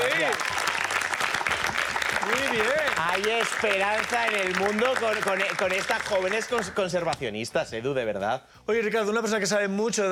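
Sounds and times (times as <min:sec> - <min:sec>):
audience applause: 0:00.0 - 0:06.9
speech: 0:03.2 - 0:10.1.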